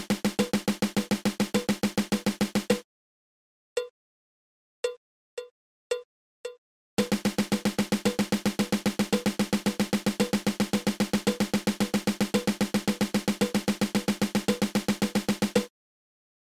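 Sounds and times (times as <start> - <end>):
drum single stroke roll: 0.0 - 2.8, 7.0 - 15.7.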